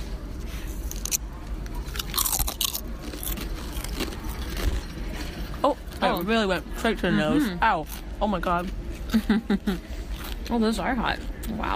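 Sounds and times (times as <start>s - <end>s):
crunching on a spicy chip: 0.9s - 5.2s
speech: 5.6s - 11.7s.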